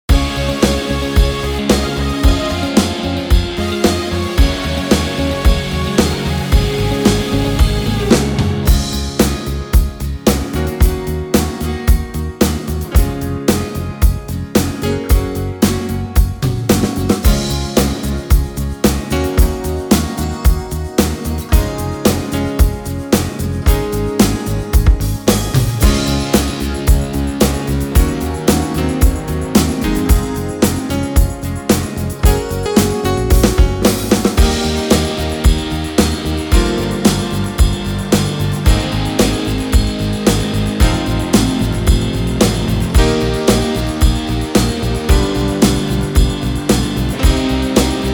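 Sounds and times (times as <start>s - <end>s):
beat: 0.1s - 48.1s.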